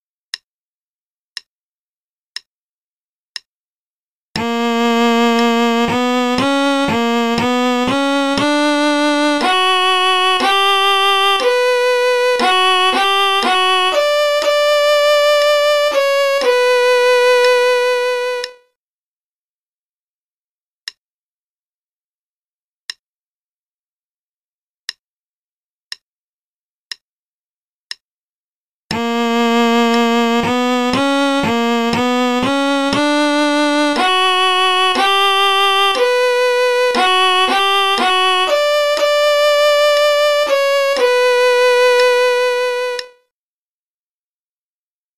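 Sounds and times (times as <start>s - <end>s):
play-along concerto in B minor at 60 bpm: 4.4s - 18.7s, 28.9s - 43.2s.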